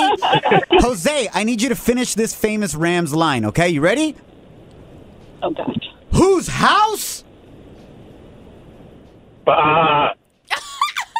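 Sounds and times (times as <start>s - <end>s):
laughter: 0.0s - 1.0s, 10.5s - 11.1s
speech: 0.5s - 4.4s, 5.4s - 7.2s, 9.5s - 10.2s
man imitating a ram's bleat saying bah: 9.5s - 10.2s.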